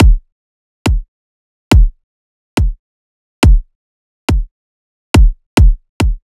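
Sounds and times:
riddim kick drum loop: 0.0 - 0.3, 0.9 - 1.1, 1.7 - 2.0, 2.6 - 2.8, 3.4 - 3.7, 4.3 - 4.5, 5.2 - 6.3.

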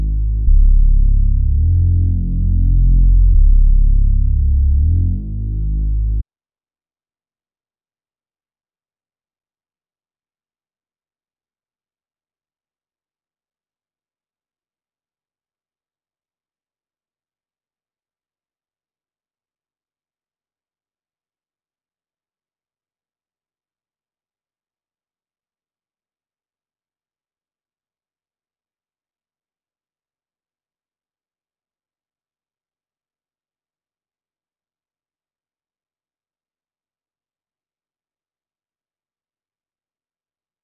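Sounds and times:
reversed bass melody loop in F minor at 167 BPM: 0.0 - 6.2.

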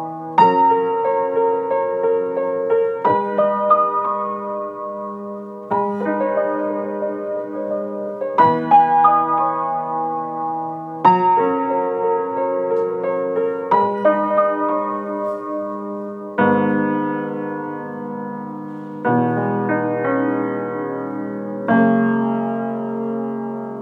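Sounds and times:
piano music in G sharp minor at 90 BPM: 0.0 - 23.8.

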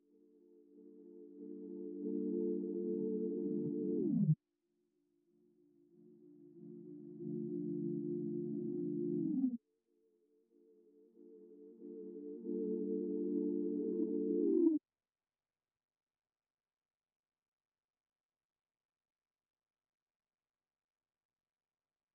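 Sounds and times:
D minor sine synth melody loop: 0.8 - 4.4, 6.4 - 9.5, 11.4 - 14.8.

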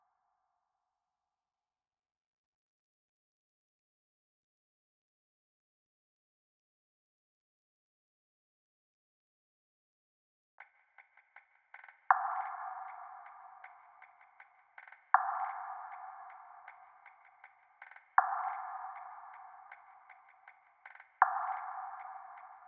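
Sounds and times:
158 BPM B minor RnB percussion loop: 10.6 - 22.6.

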